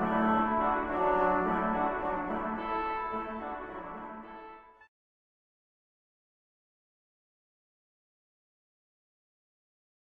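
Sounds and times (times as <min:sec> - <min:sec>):
hornpipe tune: 0:00.0 - 0:04.9.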